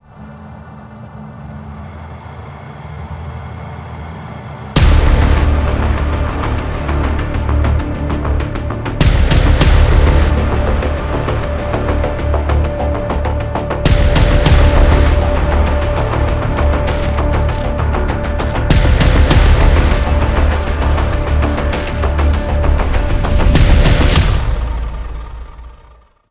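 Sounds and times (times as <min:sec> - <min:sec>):
heavy music theme: 0:04.8 - 0:25.7.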